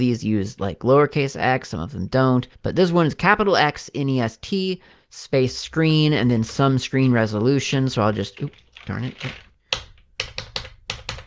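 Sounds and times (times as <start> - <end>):
speech: 0.0 - 9.4
typing on a computer keyboard: 8.3 - 11.2.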